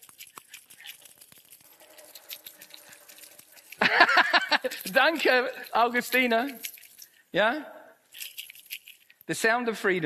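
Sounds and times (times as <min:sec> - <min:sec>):
bunches of keys jingling: 0:00.0 - 0:07.3, 0:08.0 - 0:09.3
laughter: 0:03.8 - 0:05.7
speech: 0:03.9 - 0:06.7, 0:07.3 - 0:07.8, 0:09.3 - 0:10.0.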